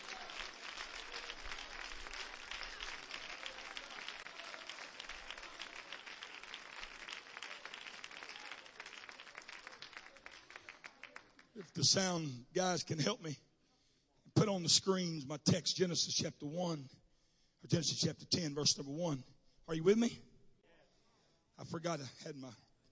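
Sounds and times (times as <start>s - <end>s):
audience clapping hands: 0.0s - 12.2s
speech: 11.6s - 13.4s, 14.5s - 17.0s, 17.6s - 20.3s, 21.6s - 22.6s.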